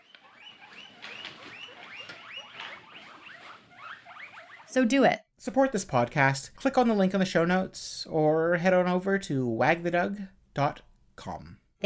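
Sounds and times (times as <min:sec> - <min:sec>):
guinea pig squeaking: 0:00.0 - 0:05.0
speech: 0:04.7 - 0:11.8.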